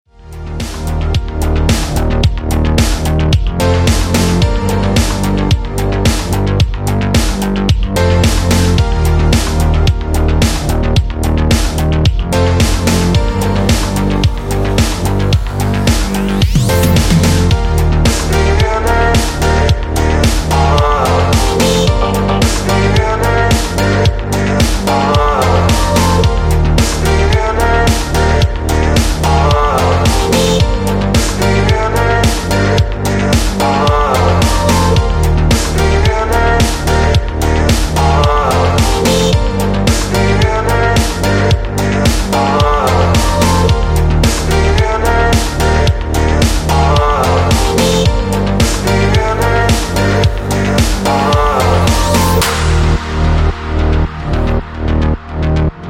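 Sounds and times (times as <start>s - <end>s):
synthwave music: 0.2s - 55.8s.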